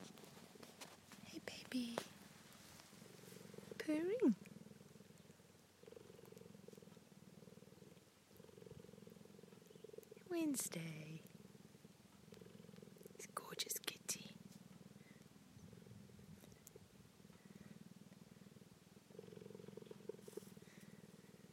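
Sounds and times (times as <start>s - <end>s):
cheetah purring: 0.0s - 21.5s.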